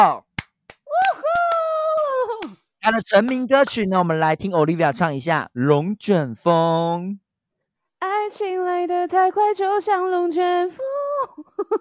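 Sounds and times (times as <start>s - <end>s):
speech: 0.0s - 0.3s, 2.8s - 7.2s, 8.3s - 11.8s
hand claps: 0.3s - 3.9s.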